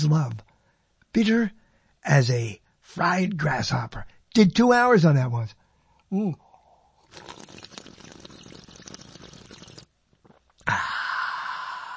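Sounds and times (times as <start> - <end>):
speech: 0.0 - 0.5, 1.2 - 6.4, 10.7 - 11.0
sipping coffee: 6.9 - 10.9.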